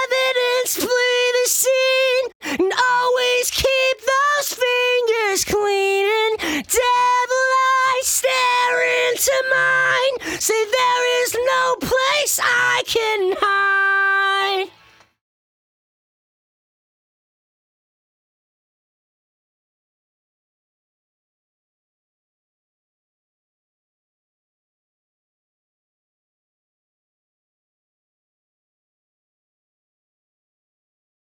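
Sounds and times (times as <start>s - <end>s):
lead vocals: 0.0s - 15.1s.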